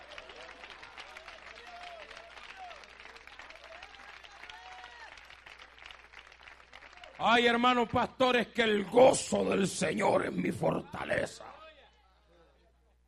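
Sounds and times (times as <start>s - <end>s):
audience applause: 0.0s - 8.0s
speech: 7.2s - 11.5s.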